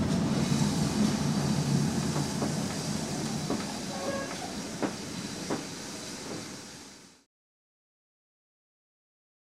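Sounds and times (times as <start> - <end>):
steam train starting slowly: 0.0 - 7.3.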